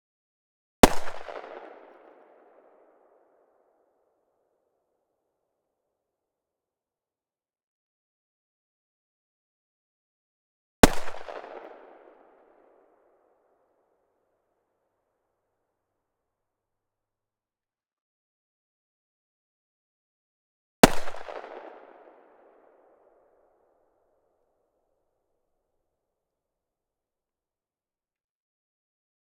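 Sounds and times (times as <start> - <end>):
Desert Eagle pistol firing: 0.8 - 2.6, 10.8 - 12.5, 20.8 - 22.0.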